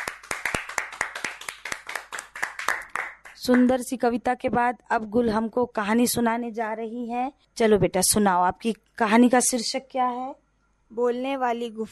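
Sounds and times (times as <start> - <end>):
group of children clapping loudly: 0.0 - 3.7
speech: 3.4 - 11.9.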